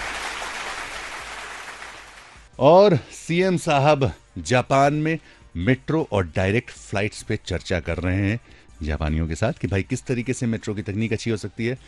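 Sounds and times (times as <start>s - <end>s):
crowd applause: 0.0s - 2.4s
speech: 2.6s - 11.8s.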